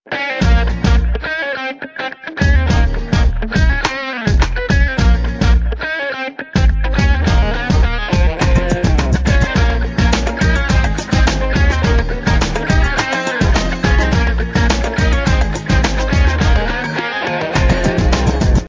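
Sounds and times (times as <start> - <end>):
electric guitar ringtone: 0.1 - 18.6.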